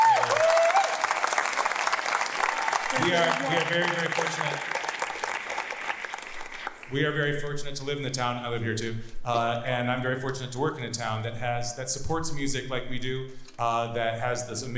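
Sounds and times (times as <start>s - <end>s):
concert audience applause: 0.0s - 6.9s
speech: 3.0s - 4.8s, 6.9s - 14.7s.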